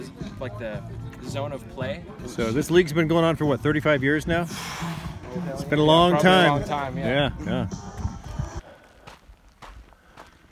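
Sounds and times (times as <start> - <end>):
speech: 0.0 - 8.0
footsteps walking along a road just under a mile from a camp: 7.8 - 10.5.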